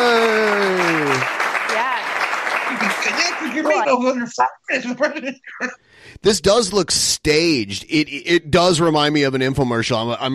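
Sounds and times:
laughter: 0.0s - 1.3s, 2.7s - 5.7s
applause for President Trump: 0.0s - 4.0s
speech: 3.6s - 10.3s.

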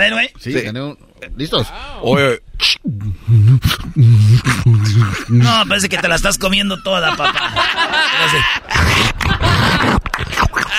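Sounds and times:
speech: 0.0s - 10.7s
beatbox vocal percussion: 2.6s - 5.8s, 8.3s - 10.7s
laughter: 4.1s - 5.8s, 6.4s - 10.7s.

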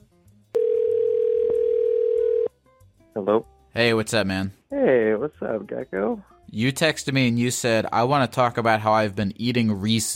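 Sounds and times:
telephone dial tone while placing a call: 0.6s - 2.5s
speech: 3.2s - 10.1s.

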